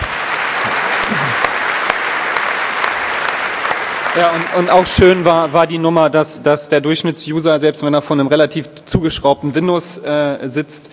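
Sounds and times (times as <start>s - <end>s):
crowd applause: 0.0s - 5.5s
speech: 4.2s - 10.9s.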